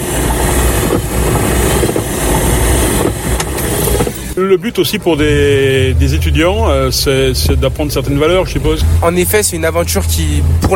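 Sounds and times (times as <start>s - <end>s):
car windshield wipers: 0.0s - 4.4s, 7.3s - 10.7s
speech: 4.4s - 10.7s.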